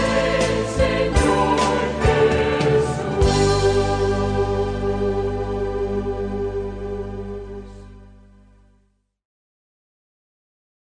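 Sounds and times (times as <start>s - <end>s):
people singing an Advent entrance hymn: 0.0s - 7.7s.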